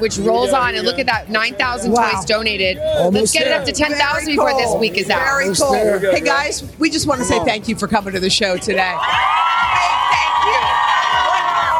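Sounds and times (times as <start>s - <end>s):
speech: 0.0s - 9.9s
studio audience cheering: 8.9s - 11.7s.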